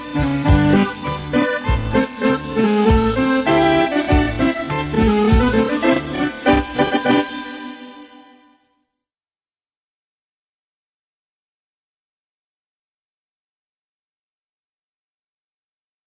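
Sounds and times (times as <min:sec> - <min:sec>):
polka orchestra: 0:00.0 - 0:08.0.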